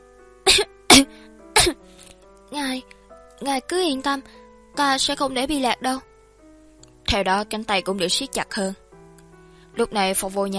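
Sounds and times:
woman dry coughing, choking on a stench: 0:00.5 - 0:01.8
speech: 0:02.8 - 0:06.1, 0:07.1 - 0:08.8, 0:09.8 - 0:10.5.

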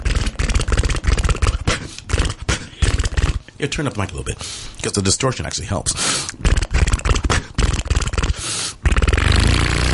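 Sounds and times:
voice imitating a Harley motorcycle engine: 0:00.0 - 0:03.4, 0:06.4 - 0:09.9
speech: 0:03.6 - 0:06.6.

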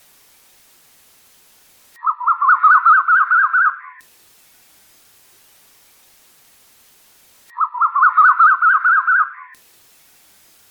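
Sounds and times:
bird chattering song: 0:02.0 - 0:04.0, 0:07.5 - 0:09.6.

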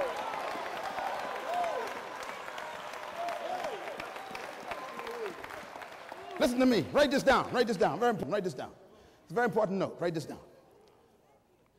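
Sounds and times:
church congregation clapping along during a service: 0:00.0 - 0:08.3
speech: 0:06.4 - 0:10.5.

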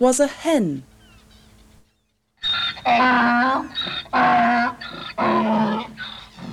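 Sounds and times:
donkey braying: 0:02.4 - 0:06.5.

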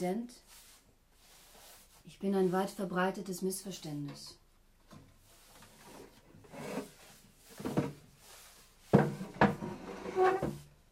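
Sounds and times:
speech: 0:00.0 - 0:00.6, 0:02.1 - 0:05.0
wooden chair scraping and dragging across the floor: 0:05.2 - 0:10.7
wooden chair creaking rub: 0:05.5 - 0:08.0, 0:08.9 - 0:10.7
wooden chair legs bumping down: 0:08.9 - 0:10.6.

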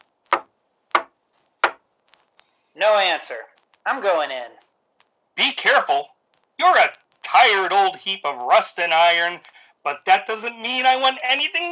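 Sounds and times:
knocking on a door: 0:00.4 - 0:01.8
speech: 0:02.8 - 0:04.7, 0:05.4 - 0:11.7.

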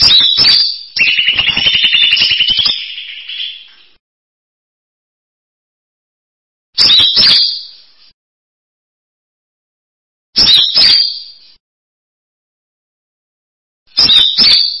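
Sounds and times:
bird song: 0:00.0 - 0:04.0, 0:06.8 - 0:08.2, 0:10.4 - 0:11.6, 0:13.9 - 0:14.7.

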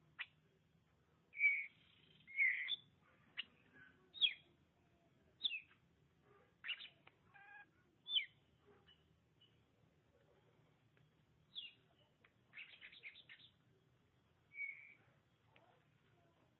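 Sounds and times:
Oriental magpie-robin singing whistled phrases: 0:01.4 - 0:03.5, 0:04.2 - 0:04.5, 0:05.4 - 0:05.8, 0:06.6 - 0:07.0, 0:08.1 - 0:09.6, 0:11.5 - 0:11.8, 0:12.6 - 0:13.6, 0:14.5 - 0:15.0.

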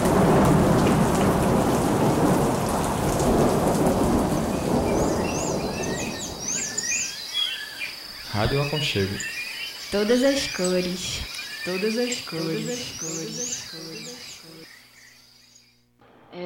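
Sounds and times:
thunder: 0:00.0 - 0:07.0
rain: 0:00.0 - 0:14.7
speech: 0:08.4 - 0:14.2.

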